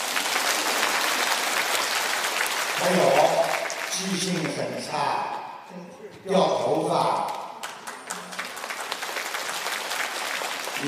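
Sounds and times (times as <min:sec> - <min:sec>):
audience applause: 0:00.0 - 0:04.9, 0:07.3 - 0:10.8
speech: 0:02.8 - 0:03.2, 0:04.0 - 0:07.4.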